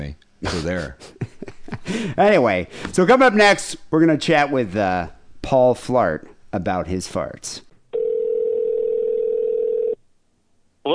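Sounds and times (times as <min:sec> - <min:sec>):
speech: 0:00.0 - 0:01.2, 0:01.9 - 0:07.6
telephone dial tone: 0:08.0 - 0:10.0.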